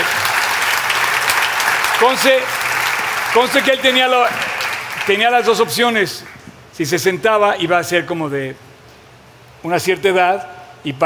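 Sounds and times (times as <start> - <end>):
audience applause: 0.0 - 6.4
speech: 2.0 - 2.6, 3.3 - 8.6, 9.6 - 11.0.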